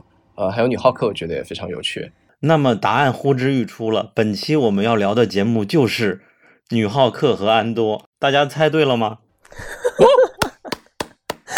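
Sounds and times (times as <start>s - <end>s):
speech: 0.4s - 10.3s
laughter: 9.5s - 10.8s
clapping: 10.4s - 11.5s.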